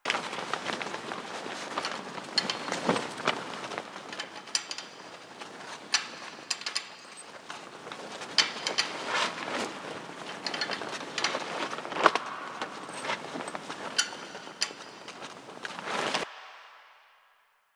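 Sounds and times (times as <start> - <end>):
tarp rustling: 0.0 - 16.3.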